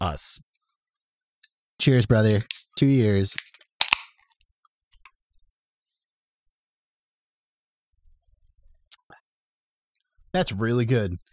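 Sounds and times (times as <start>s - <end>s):
speech: 0.0s - 0.5s, 1.8s - 3.5s, 10.3s - 11.3s
beer can cracking open with fizz: 3.3s - 4.1s
quiet clicks and handling noises: 3.3s - 4.2s.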